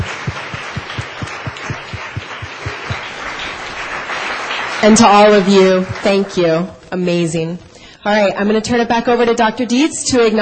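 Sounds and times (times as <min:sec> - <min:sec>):
audience applause: 0:00.0 - 0:06.9
speech: 0:04.8 - 0:10.4.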